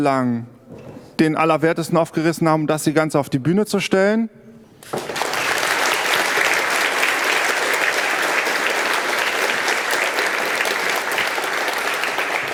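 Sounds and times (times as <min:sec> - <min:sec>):
speech: 0:00.0 - 0:05.2
audience applause: 0:04.8 - 0:12.5.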